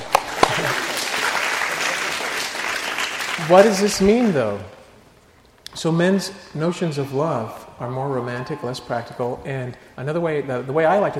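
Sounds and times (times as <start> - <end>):
audience applause: 0.0 - 4.6
speech: 3.5 - 4.8, 5.8 - 11.1.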